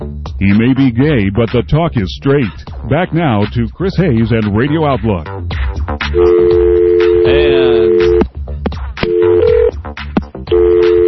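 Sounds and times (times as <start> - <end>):
speech: 0.4 - 5.5, 6.1 - 6.4
electronic telephone tone: 6.2 - 8.3, 9.1 - 9.7, 10.5 - 11.0.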